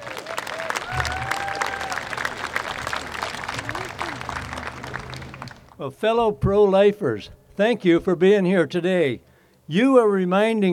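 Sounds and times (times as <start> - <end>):
audience applause welcoming a speaker at a pro-life gathering: 0.0 - 5.8
speech: 5.8 - 10.7.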